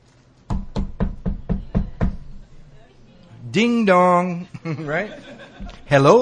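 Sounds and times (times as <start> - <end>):
knuckles knocking on a door: 0.5 - 2.5
speech: 3.6 - 6.2
laughter: 4.5 - 6.2.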